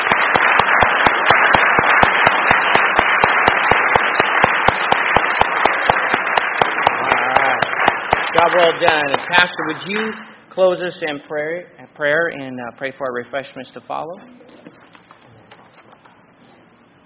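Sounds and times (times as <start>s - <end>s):
audience applause: 0.0s - 10.2s
speech: 8.4s - 14.5s.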